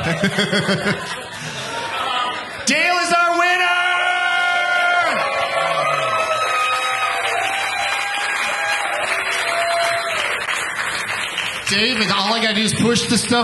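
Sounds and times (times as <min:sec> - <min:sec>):
laughter: 0:00.0 - 0:02.6
speech: 0:00.1 - 0:01.3, 0:11.7 - 0:13.4
live audience cheering with whoops: 0:03.9 - 0:10.5
live audience applauding: 0:04.8 - 0:13.0.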